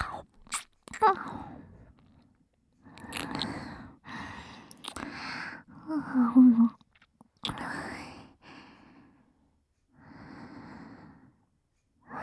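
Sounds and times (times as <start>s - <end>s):
ear licking ASMR sounds: 0.0s - 1.2s, 3.0s - 3.7s, 4.6s - 5.2s, 6.8s - 7.9s.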